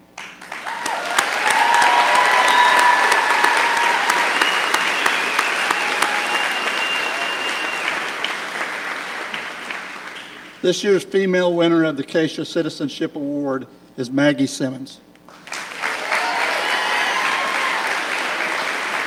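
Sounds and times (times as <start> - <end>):
audience cheering: 0.2 - 10.6, 15.3 - 19.0
speech: 10.6 - 15.1.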